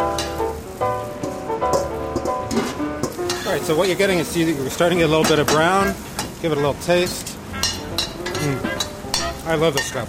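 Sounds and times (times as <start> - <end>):
potatoes sizzling in hot butter: 0.0 - 10.0
speech: 3.6 - 7.3, 9.5 - 10.0.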